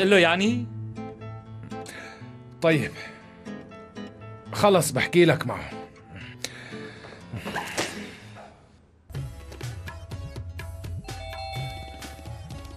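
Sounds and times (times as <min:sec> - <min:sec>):
speech: 0:00.0 - 0:00.8, 0:02.6 - 0:03.2, 0:04.5 - 0:05.8
doorbell ringing with bright chiming tones: 0:11.0 - 0:12.7.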